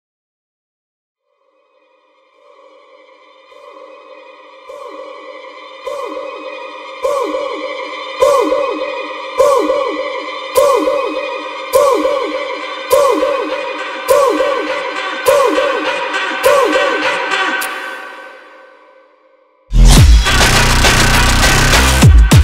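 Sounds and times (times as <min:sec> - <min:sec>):
Brazilian phonk music: 0:03.7 - 0:18.9, 0:19.7 - 0:22.4.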